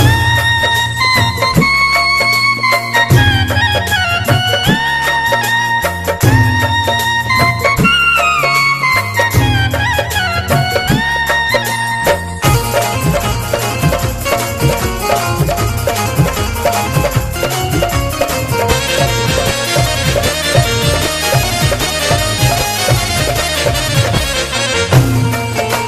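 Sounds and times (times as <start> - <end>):
music: 0.0 - 25.8.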